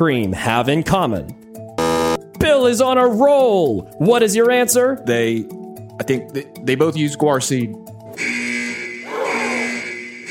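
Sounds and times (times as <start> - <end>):
speech: 0.0 - 1.4, 2.4 - 8.4
electronic quiz buzzer: 1.8 - 2.2, 8.2 - 10.3.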